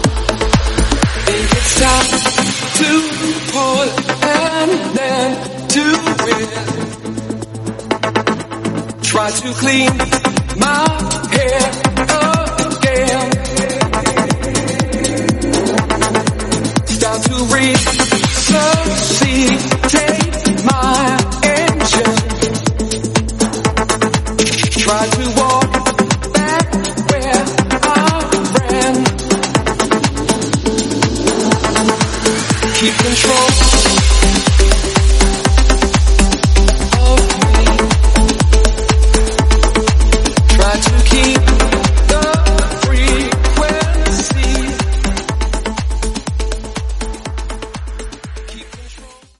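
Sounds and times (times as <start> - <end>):
music loop in A minor: 0.0 - 49.2.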